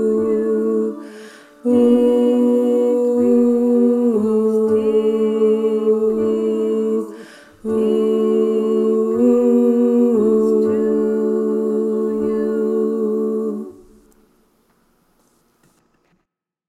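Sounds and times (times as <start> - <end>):
tenor men choir singing: 0.0 - 14.0.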